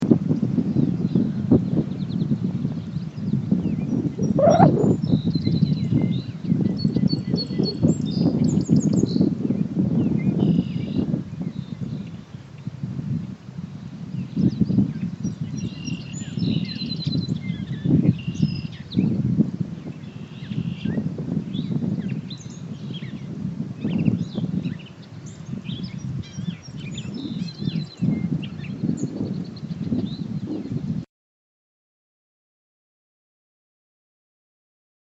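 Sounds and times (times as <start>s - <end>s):
wind in Shanksville: 0.0s - 31.0s
birdsong in Shanksville: 0.8s - 9.3s, 14.3s - 19.2s, 19.8s - 30.8s.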